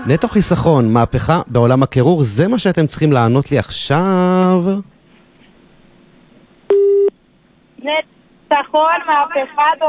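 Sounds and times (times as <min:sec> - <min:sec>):
speech: 0:00.1 - 0:04.9, 0:07.8 - 0:09.8
telephone line tone as a call is dialled: 0:06.7 - 0:07.1.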